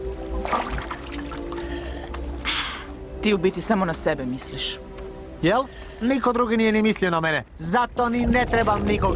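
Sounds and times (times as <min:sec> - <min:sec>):
rushing water: 0:00.3 - 0:02.5
speech: 0:03.2 - 0:09.0.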